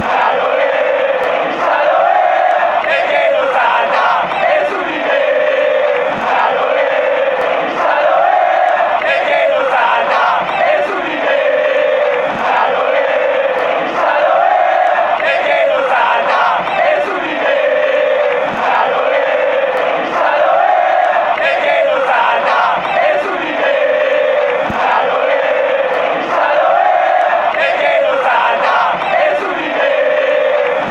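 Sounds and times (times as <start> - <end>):
English fans chanting: 0.0 - 30.8.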